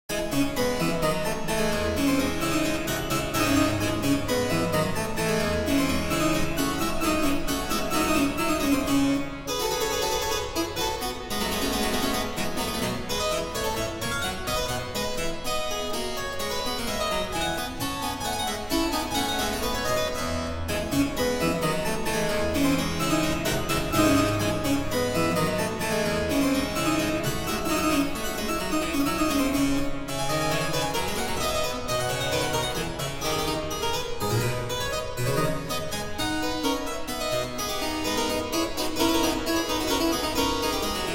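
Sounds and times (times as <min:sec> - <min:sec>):
classical prelude and fugue in D minor: 0:00.1 - 0:41.1.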